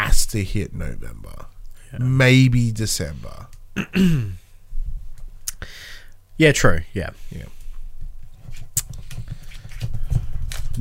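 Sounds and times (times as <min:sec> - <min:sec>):
speech: 0:00.2 - 0:04.4, 0:05.6 - 0:07.6
paper being fumbled and rustled: 0:08.3 - 0:10.7.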